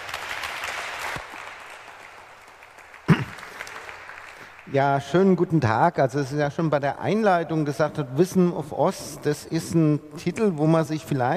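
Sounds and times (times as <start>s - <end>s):
audience applause: 0.0s - 4.8s
speech: 4.7s - 11.3s.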